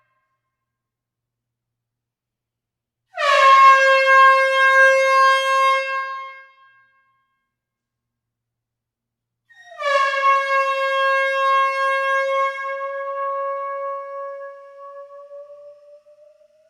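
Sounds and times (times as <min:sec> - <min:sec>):
air horn blasts in a close hall: 0:03.1 - 0:07.4, 0:09.5 - 0:16.6.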